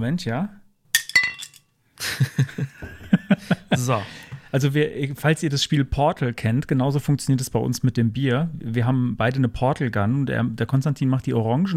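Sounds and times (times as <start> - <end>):
speech: 0.0 - 0.6, 2.2 - 11.7
glasses clinking in a toast: 1.0 - 1.6
laughter: 2.0 - 4.5.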